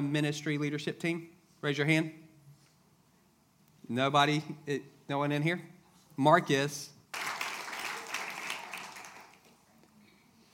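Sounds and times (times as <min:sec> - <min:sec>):
speech: 0:00.0 - 0:02.2, 0:03.9 - 0:07.0
audience applause: 0:07.1 - 0:09.5.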